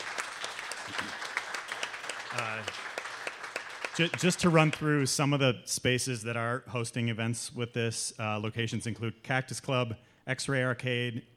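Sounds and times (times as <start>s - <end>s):
audience applause: 0.0s - 4.8s
speech: 2.3s - 2.9s, 4.0s - 11.3s.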